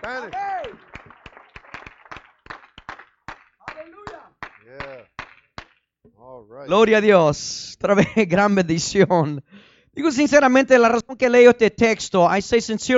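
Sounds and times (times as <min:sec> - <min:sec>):
speech: 0:00.0 - 0:00.5, 0:06.4 - 0:12.9
audience clapping hands: 0:00.0 - 0:05.9.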